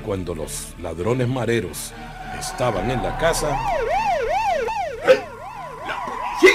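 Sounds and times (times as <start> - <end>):
speech: 0.0 - 4.0
police car siren: 1.9 - 6.5.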